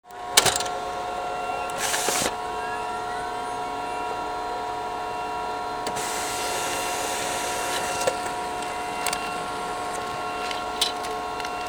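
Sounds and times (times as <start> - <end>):
office ambience: 0.9 - 11.6.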